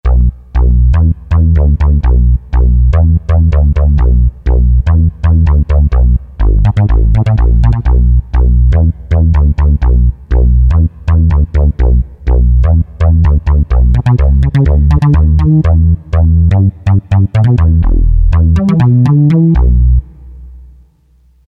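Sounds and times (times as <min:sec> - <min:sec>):
bass: 0:00.0 - 0:21.4.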